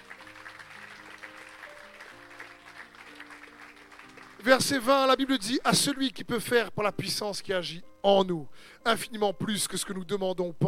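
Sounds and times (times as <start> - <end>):
church congregation applauding for Jesus during a service: 0.0 - 6.1
speech: 4.4 - 10.6.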